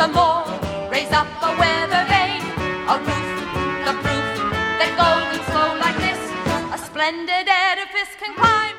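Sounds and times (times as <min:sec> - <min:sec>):
homophonic music: 0:00.0 - 0:08.7.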